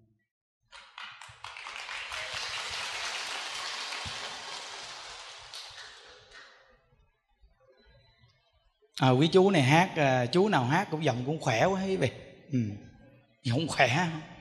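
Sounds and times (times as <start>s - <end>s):
audience applause at a Buddhist chanting talk: 0.8s - 6.5s
speech: 9.0s - 14.3s.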